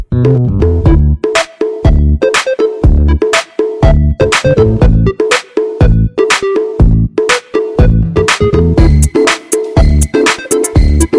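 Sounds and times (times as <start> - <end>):
bass mixer: 0.1 - 1.3, 1.9 - 3.3, 3.9 - 5.2, 5.8 - 6.3, 6.8 - 7.2, 7.8 - 9.2, 9.8 - 10.2, 10.8 - 11.1.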